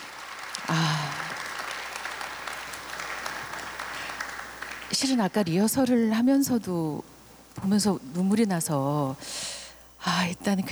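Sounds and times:
audience applause: 0.0 - 5.2
speech: 4.9 - 10.6.

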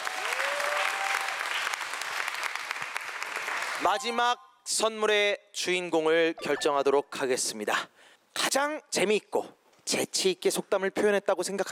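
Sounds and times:
audience applause: 0.0 - 4.0
speech: 3.8 - 11.7.

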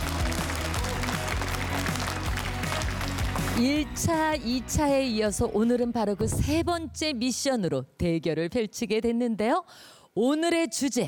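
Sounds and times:
audience applause: 0.0 - 3.6
speech: 3.6 - 11.0.

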